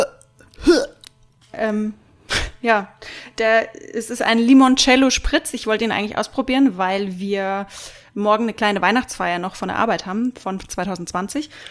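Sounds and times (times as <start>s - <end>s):
person imitating retching: 0.0s - 1.1s
speech: 1.6s - 2.0s, 2.6s - 11.7s.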